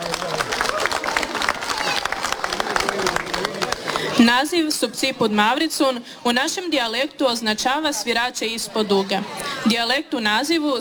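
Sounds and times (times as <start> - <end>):
audience applause for a kindergarten children's folk dance performance in Pazin: 0.0 - 4.4
laughter: 0.0 - 5.6, 7.6 - 10.5
speech: 4.2 - 10.7.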